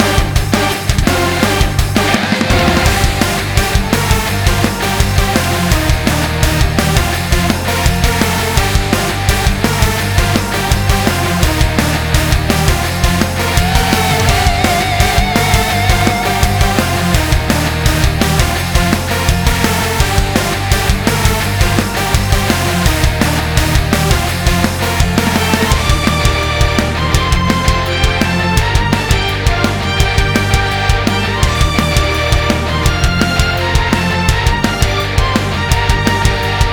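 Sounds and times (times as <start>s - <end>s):
battle music: 0.0s - 36.7s.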